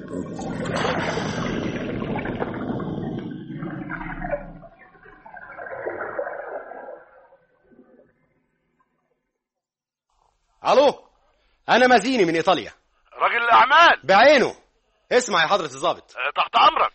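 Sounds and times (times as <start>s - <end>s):
drinking water thirstily: 0.0s - 8.1s
speech: 10.7s - 11.0s, 11.7s - 16.9s.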